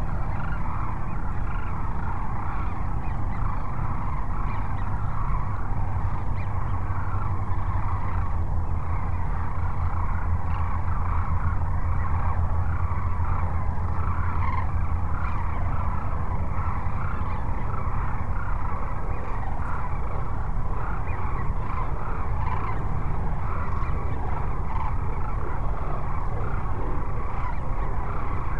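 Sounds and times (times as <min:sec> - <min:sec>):
sandhill cranes calling in a rattling bugling chorus at Cochise Lakes: 0:00.0 - 0:28.5.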